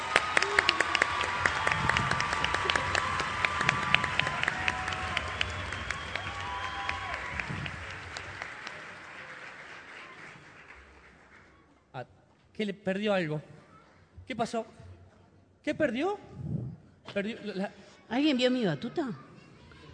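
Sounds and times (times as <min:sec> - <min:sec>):
audience applause: 0:00.0 - 0:11.6
speech: 0:12.6 - 0:13.5, 0:14.3 - 0:14.8, 0:15.6 - 0:16.3, 0:17.2 - 0:19.2.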